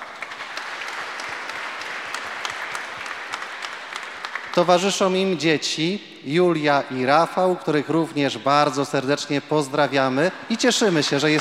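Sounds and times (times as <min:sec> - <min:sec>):
audience applause: 0:00.0 - 0:05.1, 0:10.6 - 0:11.3
speech: 0:04.6 - 0:11.3.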